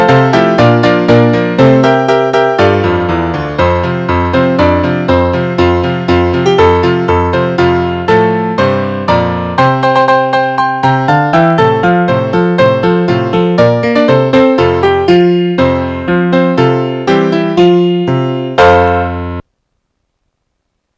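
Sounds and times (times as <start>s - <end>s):
school song instrumental on piano: 0.0s - 19.5s.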